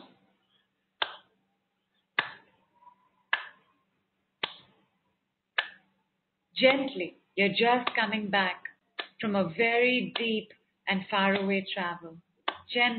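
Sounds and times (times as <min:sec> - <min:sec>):
slow sharp hand claps: 0:01.0 - 0:01.3, 0:02.2 - 0:02.5, 0:03.3 - 0:03.6, 0:04.4 - 0:04.7, 0:05.6 - 0:05.8, 0:09.0 - 0:09.2, 0:12.5 - 0:12.7
speech: 0:06.6 - 0:12.9.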